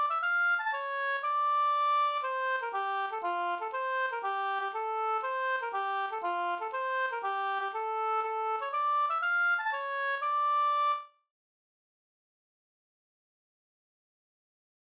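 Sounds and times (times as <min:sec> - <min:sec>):
polska folk dance tune: 0:00.0 - 0:11.0.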